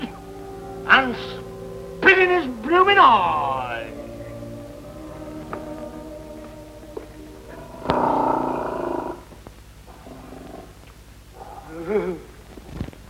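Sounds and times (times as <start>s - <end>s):
speech: 0.9s - 1.4s, 2.1s - 3.9s
lion growling and purring: 7.5s - 12.2s.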